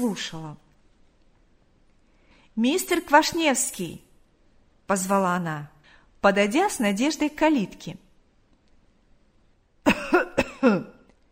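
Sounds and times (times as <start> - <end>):
speech: 0.0 - 0.6, 2.6 - 4.0, 4.9 - 8.0, 10.6 - 10.9
elderly man coughing: 9.9 - 11.0.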